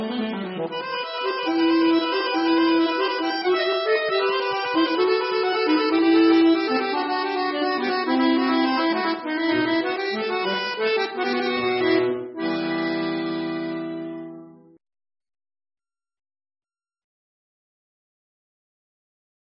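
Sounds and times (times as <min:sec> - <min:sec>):
bayan accordion: 0:00.0 - 0:14.8.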